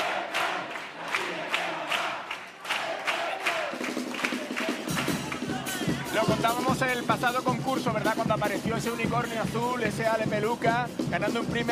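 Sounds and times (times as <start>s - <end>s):
theatre audience roar at a chirigota carnival contest: 0.0s - 6.6s
theatre audience clapping at a chirigota carnival contest: 0.0s - 6.7s
speech: 6.2s - 11.7s.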